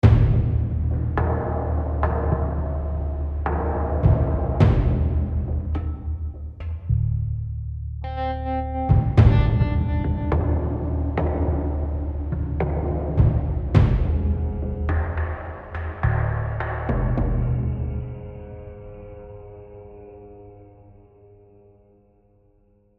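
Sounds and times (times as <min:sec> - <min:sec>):
tension music: 0:00.0 - 0:21.0.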